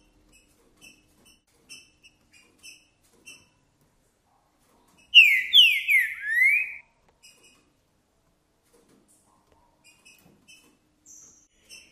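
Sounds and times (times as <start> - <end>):
green-winged saltator whistled song: 5.2 - 6.8.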